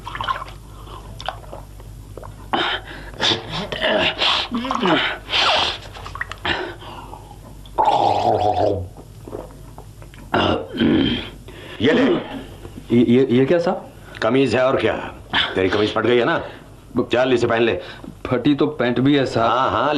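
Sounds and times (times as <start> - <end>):
person gulping and swallowing water: 0.0 - 2.6, 4.5 - 5.2, 6.0 - 11.2
speech: 3.2 - 5.2, 12.9 - 19.9.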